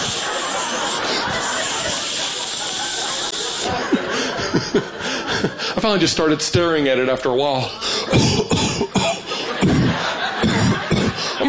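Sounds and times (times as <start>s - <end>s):
deodorant aerosol can spraying: 0.0s - 3.8s
person chuckling: 0.0s - 5.6s, 8.1s - 11.3s
speech: 5.8s - 9.3s.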